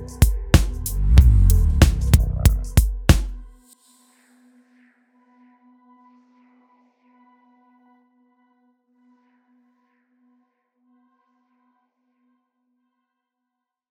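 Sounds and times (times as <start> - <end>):
talk bass: 0.0 - 3.5.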